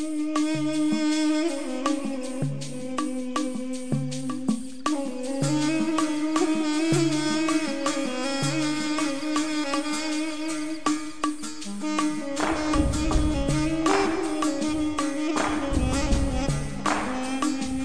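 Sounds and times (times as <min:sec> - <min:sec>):
low music: 0:00.2 - 0:17.8.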